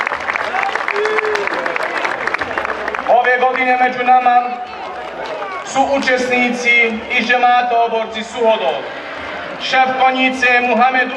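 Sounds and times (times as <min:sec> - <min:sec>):
audience clapping to greet cavalry riders at a traditional horseback procession: 0:00.0 - 0:06.4
crowd noise at a traditional horseback procession: 0:00.0 - 0:11.1
speech: 0:03.6 - 0:04.7, 0:05.7 - 0:09.0, 0:09.6 - 0:11.1.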